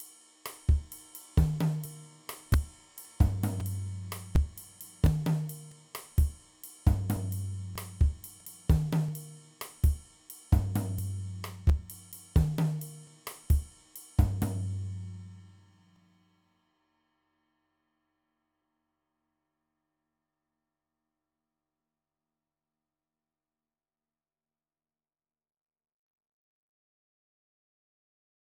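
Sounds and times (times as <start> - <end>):
salsa beat: 0.5 - 13.6.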